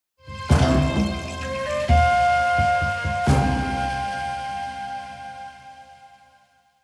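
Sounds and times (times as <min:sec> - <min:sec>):
musical stinger: 0:00.4 - 0:04.5.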